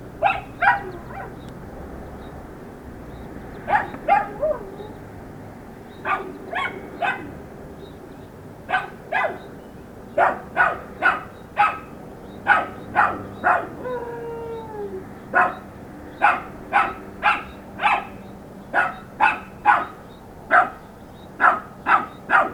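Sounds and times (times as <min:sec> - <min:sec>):
dog barking: 0:00.2 - 0:01.4, 0:03.6 - 0:05.0, 0:06.0 - 0:07.4, 0:08.7 - 0:09.5, 0:10.2 - 0:13.8, 0:15.3 - 0:20.8, 0:21.4 - 0:22.5
dog whining howl: 0:03.8 - 0:05.0, 0:13.4 - 0:15.6.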